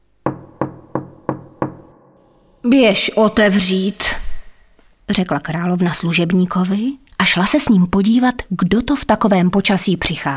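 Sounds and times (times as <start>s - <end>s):
knocking on a castle door: 0.2s - 2.2s
speech: 2.6s - 4.2s, 5.1s - 10.3s.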